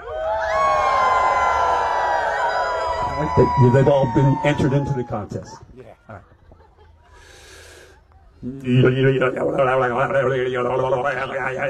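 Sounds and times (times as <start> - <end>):
crowd howling like wolves at the moon: 0.0 - 5.6
speech: 3.4 - 6.3, 8.4 - 11.6.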